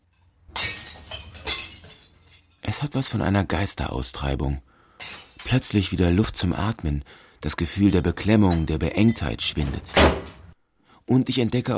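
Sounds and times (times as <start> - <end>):
glass preserve jars shattering in a container: 0.0 - 2.6, 5.0 - 5.7, 8.5 - 10.6
glass shards tinkling: 0.0 - 2.6, 5.0 - 5.6
speech: 2.8 - 4.7, 5.5 - 10.2, 11.1 - 11.7.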